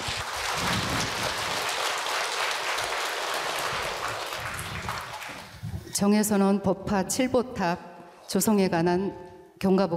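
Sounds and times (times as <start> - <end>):
audience applause: 0.0 - 5.7
speech: 6.0 - 9.9.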